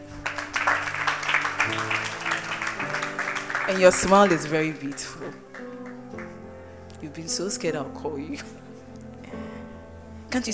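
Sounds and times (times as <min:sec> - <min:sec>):
audience clapping: 0:00.0 - 0:06.6
speech: 0:03.7 - 0:05.7, 0:07.0 - 0:08.6.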